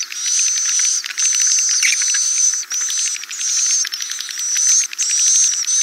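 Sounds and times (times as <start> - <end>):
swiftlet chirping calls: 0.2 - 5.8.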